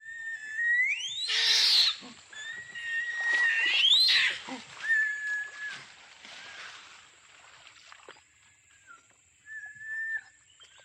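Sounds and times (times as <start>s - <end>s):
orangutan calls: 0.0s - 5.9s.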